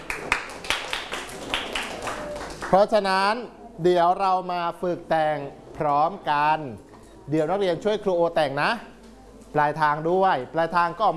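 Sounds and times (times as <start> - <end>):
students clapping for a classmate: 0.0 - 2.8
speech: 2.7 - 8.9, 9.5 - 11.1.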